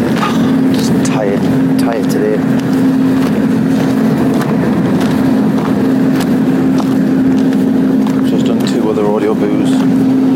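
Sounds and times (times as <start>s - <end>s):
big generator running: 0.0s - 10.3s.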